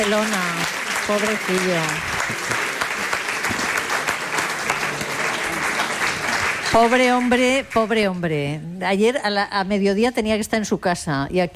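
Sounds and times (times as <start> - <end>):
speech: 0.0 - 2.5, 6.8 - 11.5
audience applause: 0.0 - 7.9.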